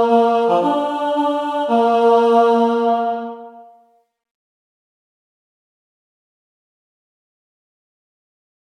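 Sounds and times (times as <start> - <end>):
person singing: 0.0 - 3.7
prymka lead violin playing: 0.0 - 3.7.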